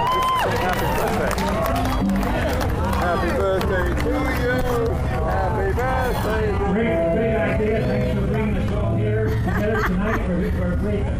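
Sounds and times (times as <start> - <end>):
laughter: 0.2 - 6.7, 7.6 - 11.1
guitar playing: 1.1 - 9.1.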